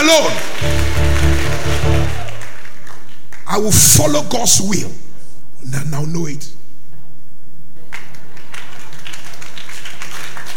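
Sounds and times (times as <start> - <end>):
speech: 0.0 - 1.1, 3.5 - 5.0, 5.6 - 6.6
crowd clapping their hands: 0.0 - 3.8, 7.8 - 10.5.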